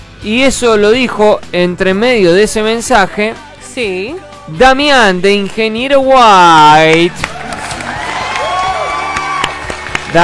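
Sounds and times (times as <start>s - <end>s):
speech: 0.2s - 7.4s
claps: 6.8s - 10.2s
crowd cheering sound effect on a radio show: 7.0s - 10.2s.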